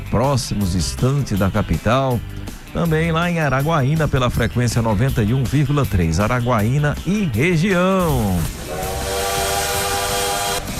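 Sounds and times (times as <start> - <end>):
speech: 0.1 - 8.9
broad rushing hiss of a bullet train sound effect: 8.4 - 10.7
bullet train sound effect: 8.5 - 10.7.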